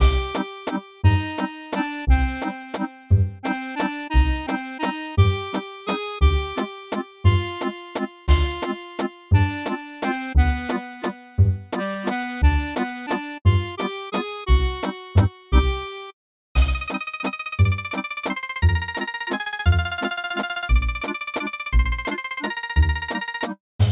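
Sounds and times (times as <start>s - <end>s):
waltz music: 0.0s - 16.1s, 16.7s - 23.6s.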